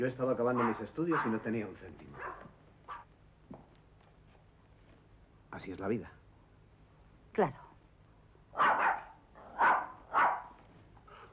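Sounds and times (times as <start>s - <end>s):
speech: 0.0s - 2.5s, 5.6s - 6.2s, 7.4s - 7.6s
dog barking in short sharp bursts: 0.4s - 1.5s, 2.1s - 3.1s, 8.5s - 10.6s.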